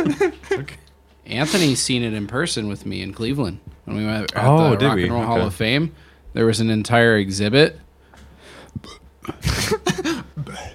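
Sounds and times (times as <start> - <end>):
speech: 0.0 - 7.8
small burp: 8.8 - 9.4.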